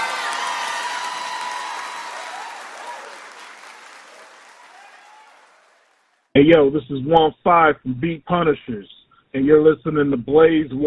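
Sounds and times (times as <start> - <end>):
faint scattered cheers and voices: 0.0 - 5.9
crowd applauding: 0.0 - 6.3
speech: 6.4 - 10.8.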